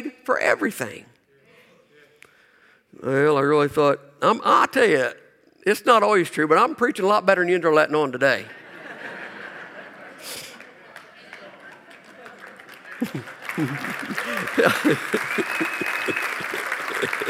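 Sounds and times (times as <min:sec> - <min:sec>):
speech: 0:00.3 - 0:01.1, 0:02.9 - 0:08.6, 0:13.0 - 0:17.2
people laughing and chuckling: 0:08.5 - 0:17.2
crowd applauding: 0:09.9 - 0:17.2.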